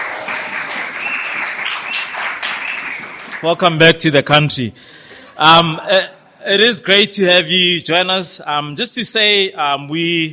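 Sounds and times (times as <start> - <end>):
church congregation at Christchurch Midrand applauding a returning guest: 0.0 - 3.8
speech: 3.4 - 10.3.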